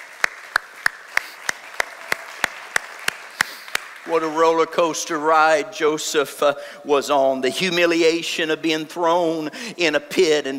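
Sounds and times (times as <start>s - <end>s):
audience hand clapping: 0.0s - 4.2s
soft hiss: 0.1s - 10.5s
speech: 4.0s - 10.5s.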